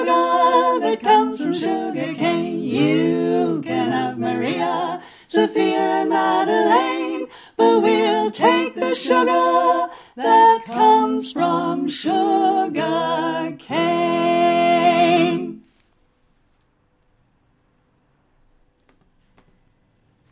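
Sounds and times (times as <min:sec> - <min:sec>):
folk choir singing all parts: 0:00.0 - 0:15.7.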